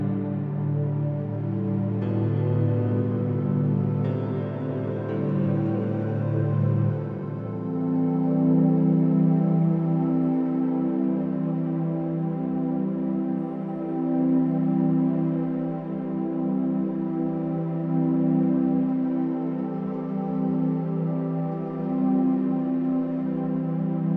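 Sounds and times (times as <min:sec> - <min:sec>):
ethnic flute: 0:00.0 - 0:24.1
grand piano: 0:00.0 - 0:24.1
musical ambience: 0:00.0 - 0:24.1.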